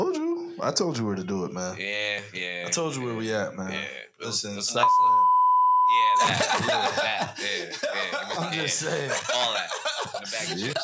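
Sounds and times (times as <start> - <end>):
speech: 0.6 - 5.3, 5.9 - 10.8
phone beep: 4.8 - 6.3
people laughing: 5.9 - 10.8.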